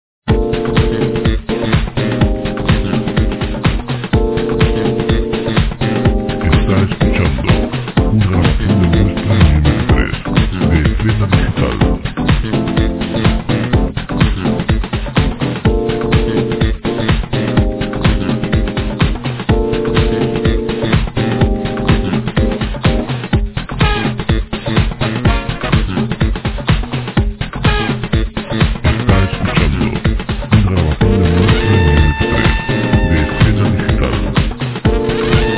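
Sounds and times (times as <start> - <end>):
jazz music: 0.3 - 35.5.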